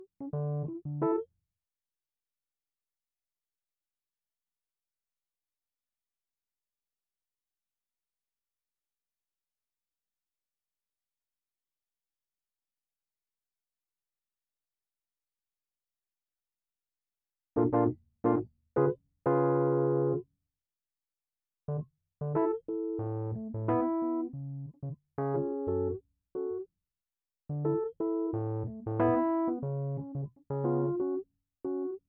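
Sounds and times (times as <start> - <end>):
keyboard music: 0.0 - 1.2, 17.6 - 20.2, 21.7 - 26.6, 27.5 - 32.0.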